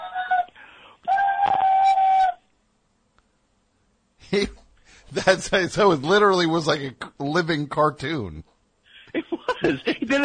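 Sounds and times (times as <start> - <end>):
voice imitating steam whistle: 1.1 - 2.4
speech: 4.3 - 8.5, 9.6 - 10.2
laughter: 9.0 - 10.2.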